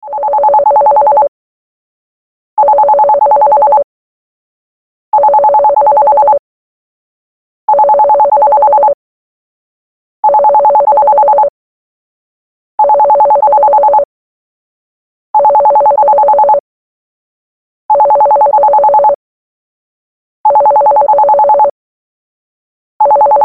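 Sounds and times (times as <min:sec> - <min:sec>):
landline phone ringtone: 0:00.0 - 0:01.3, 0:02.6 - 0:03.9, 0:05.2 - 0:06.4, 0:07.7 - 0:09.0, 0:10.2 - 0:11.5, 0:12.8 - 0:14.1, 0:15.4 - 0:16.6, 0:17.9 - 0:19.2, 0:20.5 - 0:21.8, 0:23.0 - 0:23.4.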